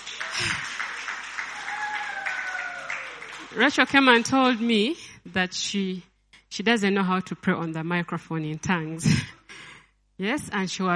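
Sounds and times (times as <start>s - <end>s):
audience applause: 0.0s - 4.7s
speech: 3.5s - 9.4s, 10.2s - 10.9s.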